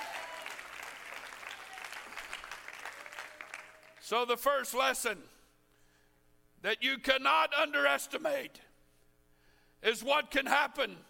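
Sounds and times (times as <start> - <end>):
audience clapping: 0.0 - 4.0
speech: 4.1 - 5.4, 6.6 - 8.7, 9.8 - 11.0.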